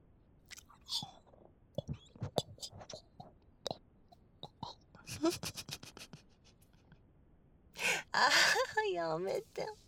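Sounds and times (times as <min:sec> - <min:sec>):
person eating takoyaki, chewing and mouth sounds: 0:00.5 - 0:04.8
speech: 0:05.2 - 0:05.6, 0:08.9 - 0:09.8.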